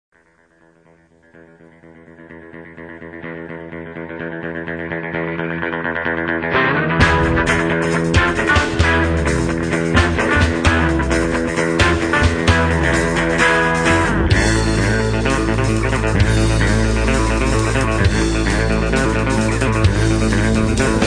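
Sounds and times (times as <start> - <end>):
guitar: 0.1 - 21.0.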